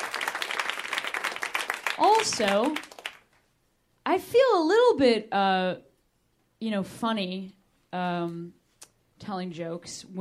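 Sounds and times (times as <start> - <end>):
audience clapping: 0.0 - 3.5
speech: 2.0 - 2.9, 4.1 - 5.9, 6.6 - 8.6, 9.2 - 10.1.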